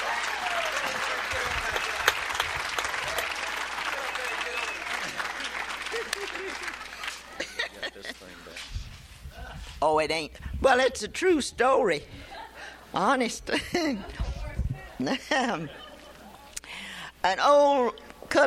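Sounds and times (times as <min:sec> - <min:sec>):
audience applause welcoming a woman onto a stage: 0:00.0 - 0:07.7
laughter: 0:00.0 - 0:08.6, 0:13.5 - 0:14.3, 0:14.9 - 0:16.6
speech: 0:10.0 - 0:12.2, 0:13.0 - 0:14.2, 0:15.0 - 0:15.8, 0:17.2 - 0:18.4.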